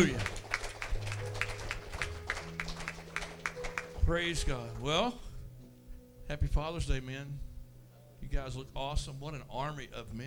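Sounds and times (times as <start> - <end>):
speech: 0.0 - 0.3, 4.1 - 5.2, 6.3 - 7.5, 8.2 - 10.2
audience clapping rhythmically: 0.0 - 4.0.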